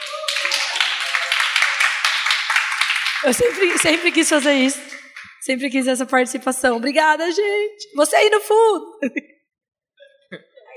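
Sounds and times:
audience applause: 0:00.0 - 0:05.5
speech: 0:03.2 - 0:09.4.

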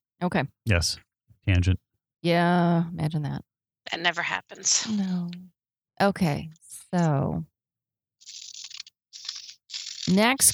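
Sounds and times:
speech: 0:00.2 - 0:07.5, 0:10.1 - 0:10.5
scissors cutting paper snowflakes: 0:08.2 - 0:10.5.

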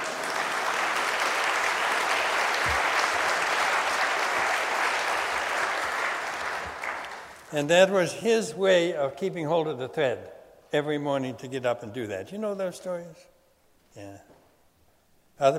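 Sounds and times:
audience clapping: 0:00.0 - 0:07.6
speech: 0:07.5 - 0:13.3, 0:14.0 - 0:14.3, 0:15.4 - 0:15.5.

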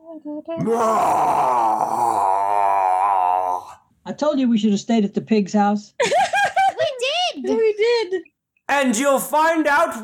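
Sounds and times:
speech: 0:00.2 - 0:02.0, 0:04.2 - 0:06.2, 0:07.4 - 0:10.0
voices imitating zombie groans: 0:00.6 - 0:03.8.

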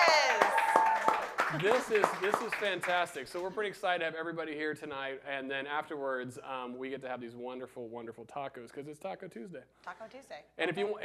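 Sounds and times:
live studio audience cheering and whooping: 0:00.0 - 0:01.3
live studio audience clapping: 0:00.0 - 0:03.7
speech: 0:01.5 - 0:11.0.

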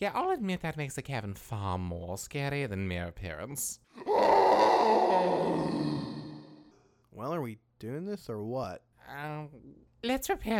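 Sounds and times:
speech: 0:00.0 - 0:06.1, 0:07.2 - 0:10.5
tortured screaming echoing from a cavern: 0:04.0 - 0:06.8.

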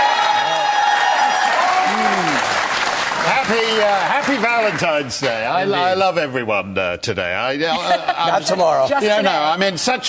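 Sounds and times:
audience applause: 0:00.0 - 0:05.3
speech: 0:03.5 - 0:10.0.

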